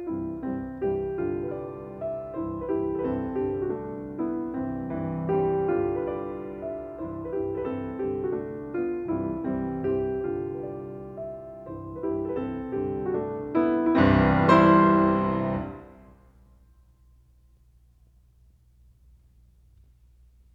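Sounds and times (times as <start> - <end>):
piano mazurka in C: 0.0 - 16.2.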